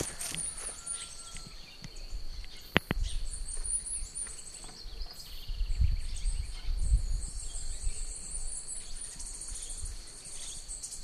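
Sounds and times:
birds chirping and whistling: 0.0s - 11.0s.

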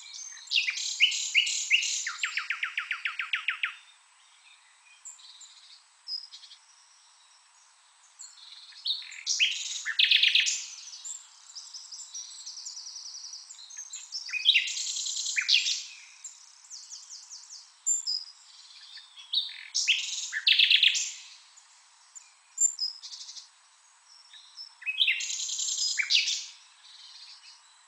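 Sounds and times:
common nightingale song: 0.0s - 27.8s.

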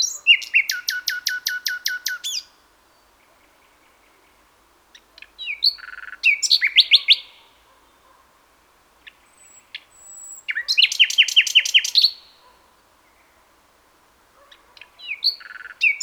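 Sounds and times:
common nightingale Luscinia megarhynchos song of rapid chirps and trills: 0.0s - 8.1s, 9.0s - 13.4s, 14.4s - 16.0s.

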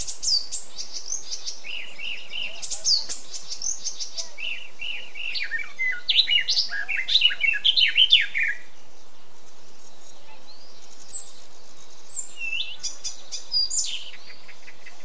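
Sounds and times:
Eurasian blackcap song: 0.0s - 8.8s, 9.9s - 15.0s.

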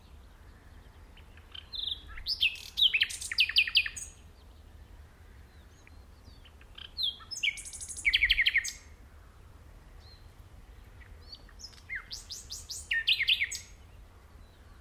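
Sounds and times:
common nightingale Luscinia megarhynchos singing whistles and trills: 0.0s - 4.9s, 5.5s - 9.0s, 10.0s - 14.7s.

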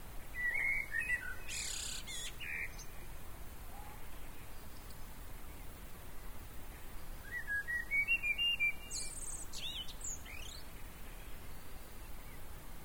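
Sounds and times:
Common blackbird twittering: 0.4s - 2.9s, 7.2s - 12.4s.

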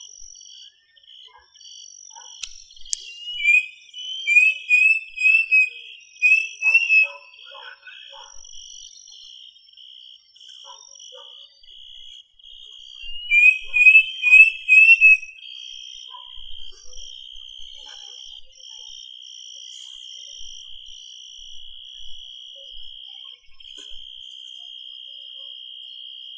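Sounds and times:
bird whistling: 2.9s - 8.0s, 13.1s - 15.4s.

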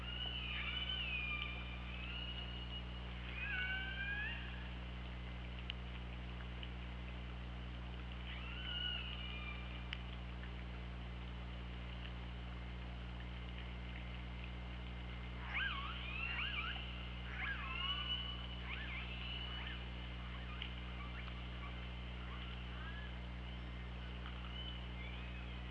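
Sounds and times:
killer whale whistles: 0.0s - 4.6s, 8.3s - 9.8s, 15.4s - 23.7s, 24.4s - 25.6s
low underwater hum: 0.0s - 25.6s.

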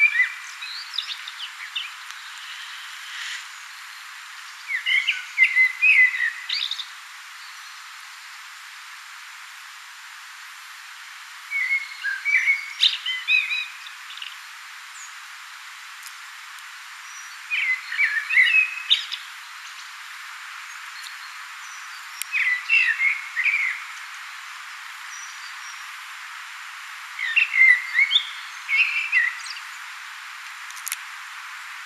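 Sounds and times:
common blackbird song: 0.0s - 7.9s, 11.5s - 15.2s, 17.0s - 20.0s, 20.6s - 25.9s, 27.2s - 29.9s
hiss: 0.0s - 31.8s.

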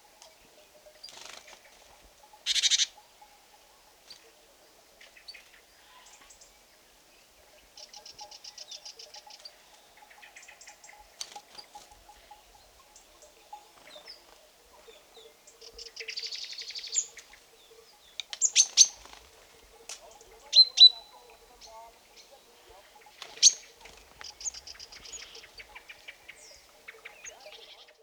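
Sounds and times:
great tit calls: 0.0s - 28.0s.

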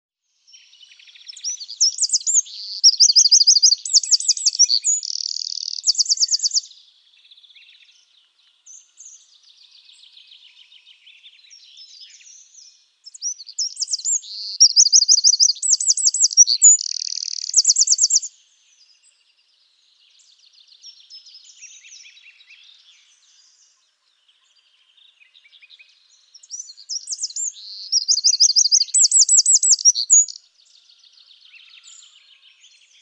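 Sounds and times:
Eurasian wren song: 0.4s - 33.0s
speech: 4.7s - 5.0s.

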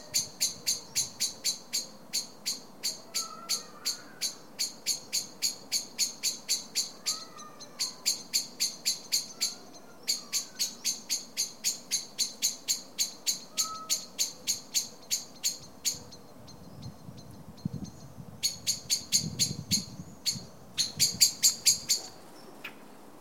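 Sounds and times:
common blackbird ticking calls: 0.2s - 22.8s.

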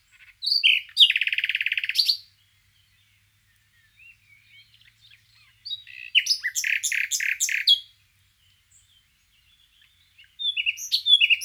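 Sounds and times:
common nightingale Luscinia megarhynchos song: 0.0s - 11.4s.

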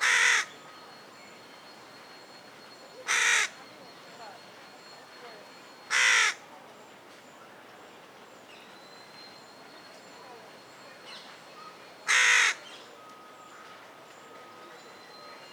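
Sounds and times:
Carrion crow cawing, Corvus corone: 0.0s - 0.5s, 3.1s - 3.6s, 5.9s - 6.4s, 12.1s - 12.6s.

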